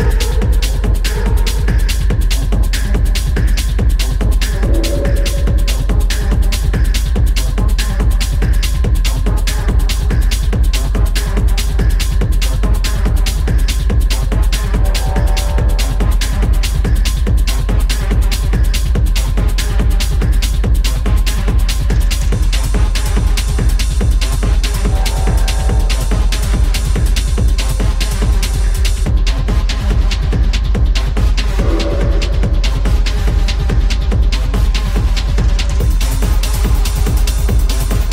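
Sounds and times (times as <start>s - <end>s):
industrial techno noise music: 0.0s - 38.1s.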